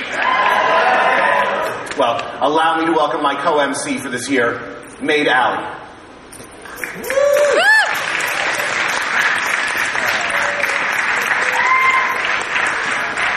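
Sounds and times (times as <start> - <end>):
audience applause: 0.0 - 2.0, 6.8 - 13.3
speech: 2.0 - 5.8, 6.8 - 7.7.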